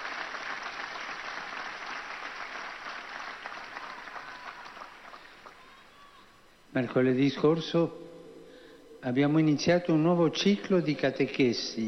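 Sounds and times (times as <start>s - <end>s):
audience applause: 0.0s - 5.9s
speech: 6.8s - 8.0s, 9.0s - 11.8s.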